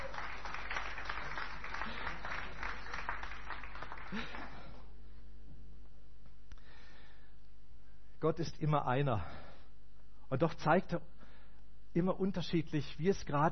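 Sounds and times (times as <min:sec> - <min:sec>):
audience applause: 0:00.0 - 0:04.8
speech: 0:08.2 - 0:09.4, 0:10.3 - 0:11.1, 0:11.9 - 0:13.5.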